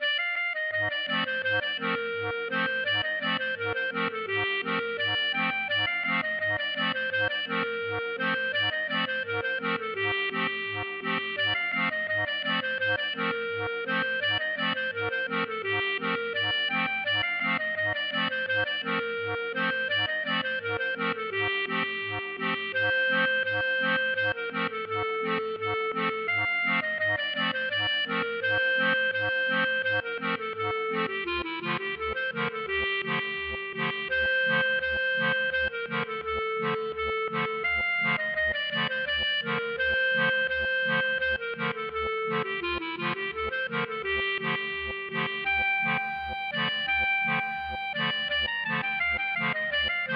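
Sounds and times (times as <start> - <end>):
klezmer wedding music: 0.0 - 50.1.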